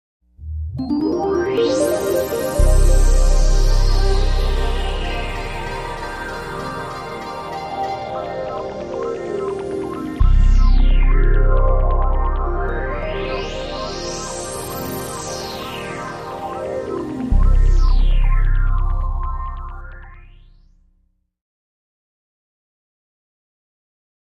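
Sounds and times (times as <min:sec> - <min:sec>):
ambient pad: 0:00.8 - 0:20.0.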